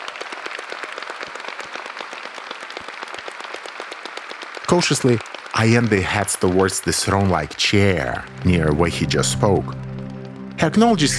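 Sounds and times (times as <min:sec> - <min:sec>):
thunderous applause from a room: 0:02.6 - 0:11.1
speech: 0:04.7 - 0:09.8, 0:10.6 - 0:11.1.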